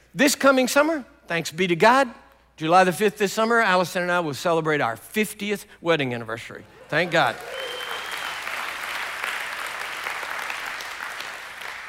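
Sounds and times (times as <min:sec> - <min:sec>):
speech: 0:00.2 - 0:07.8
crowd applause: 0:06.8 - 0:11.8.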